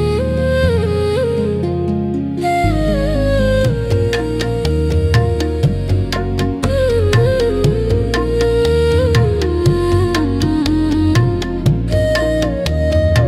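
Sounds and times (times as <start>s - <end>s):
soulful instrumental flute: 0.0s - 13.2s
tabla: 2.7s - 13.2s.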